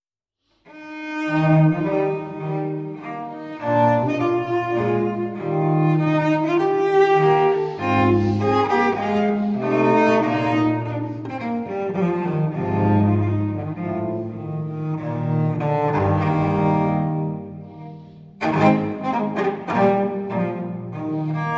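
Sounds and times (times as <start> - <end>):
violoncello and basso continuo sonata: 0.7 - 21.5.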